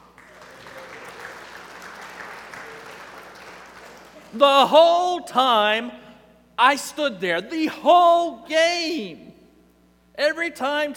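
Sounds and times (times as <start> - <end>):
applause: 0.0 - 4.4
speech: 4.3 - 6.0, 6.6 - 9.3, 10.2 - 10.9.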